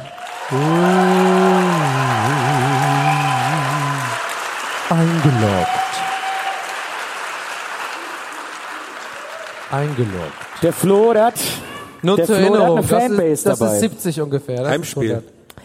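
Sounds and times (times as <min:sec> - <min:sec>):
live audience applause: 0:00.0 - 0:11.9
speech: 0:00.5 - 0:01.0, 0:05.0 - 0:05.8, 0:09.7 - 0:15.4.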